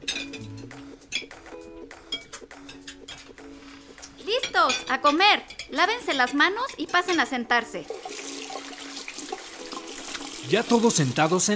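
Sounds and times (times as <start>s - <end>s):
dishes and cutlery clinking as a table is set: 0.0s - 1.5s, 2.1s - 7.4s
speech: 4.6s - 8.0s, 10.5s - 11.5s.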